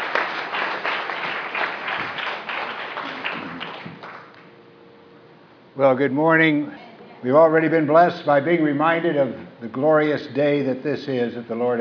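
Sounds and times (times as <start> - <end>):
audience applause welcoming a pastor at a church service: 0.0 - 4.4
speech: 5.8 - 11.7.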